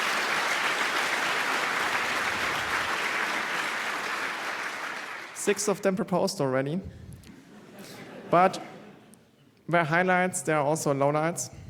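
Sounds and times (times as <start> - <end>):
crowd clapping: 0.0 - 5.4
speech: 5.5 - 7.0, 8.3 - 8.7, 9.7 - 11.6.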